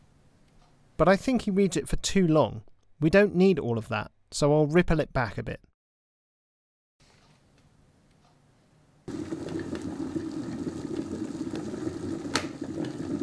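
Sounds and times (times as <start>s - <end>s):
speech: 1.0s - 5.7s
kettle boiling: 9.1s - 13.2s.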